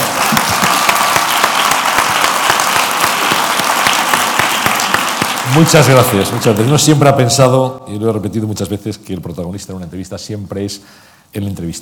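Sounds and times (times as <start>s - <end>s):
applause: 0.0s - 6.8s
speech: 5.5s - 11.8s.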